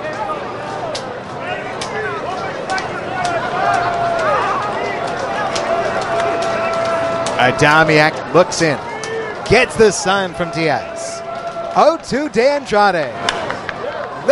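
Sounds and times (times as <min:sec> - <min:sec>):
stadium crowd murmur and scattered voices: 0:00.0 - 0:14.3
stadium crowd slow clapping: 0:02.6 - 0:07.6, 0:13.2 - 0:14.3
speech: 0:07.4 - 0:08.9, 0:09.5 - 0:11.0, 0:11.7 - 0:13.4.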